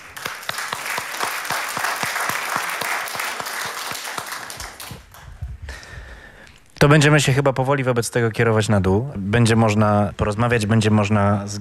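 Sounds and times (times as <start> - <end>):
crowd applauding: 0.0 - 5.4
speech: 6.8 - 11.5.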